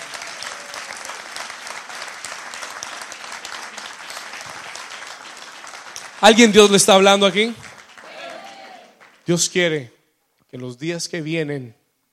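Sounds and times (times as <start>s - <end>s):
audience applauding: 0.0s - 9.5s
speech: 6.2s - 7.6s, 9.3s - 11.8s.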